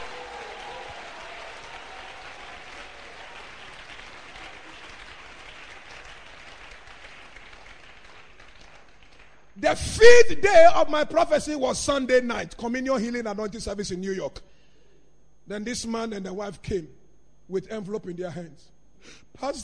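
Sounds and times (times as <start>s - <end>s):
audience applause: 0.0s - 9.5s
speech: 9.6s - 14.5s, 15.5s - 19.6s.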